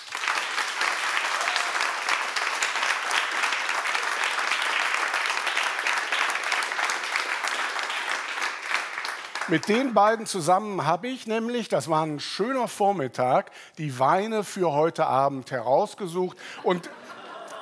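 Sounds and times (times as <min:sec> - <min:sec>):
audience applause: 0:00.0 - 0:10.1
speech: 0:09.5 - 0:17.0
laughter: 0:16.5 - 0:17.6.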